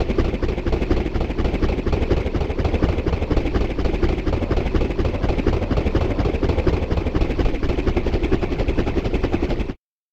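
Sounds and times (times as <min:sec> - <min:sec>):
helicopter bass: 0:00.0 - 0:09.8.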